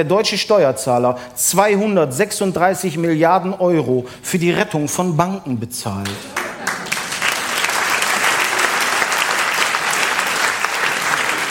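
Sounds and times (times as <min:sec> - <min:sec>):
speech: 0:00.0 - 0:06.4
audience applause: 0:06.1 - 0:11.4.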